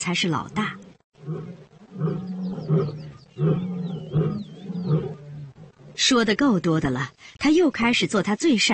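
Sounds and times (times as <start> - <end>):
speech: 0.0 - 0.8, 6.1 - 8.7
faint birdsong: 0.1 - 8.0
young male lion roaring: 0.4 - 6.2.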